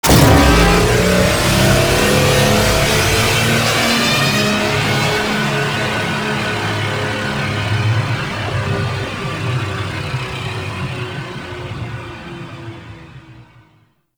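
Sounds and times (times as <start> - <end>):
Railjack ship boost engine: 0.0 - 10.3.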